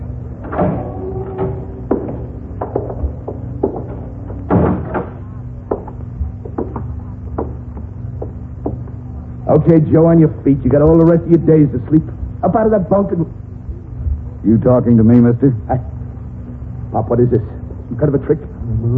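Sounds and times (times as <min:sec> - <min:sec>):
cell door opening with knocks, clunks and thuds: 0:00.0 - 0:07.7
speech: 0:09.6 - 0:13.4, 0:14.4 - 0:16.0, 0:16.9 - 0:18.9.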